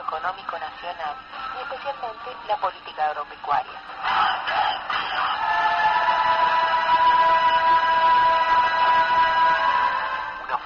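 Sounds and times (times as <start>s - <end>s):
speech: 0.1s - 6.4s
large protest crowd din: 3.9s - 10.6s.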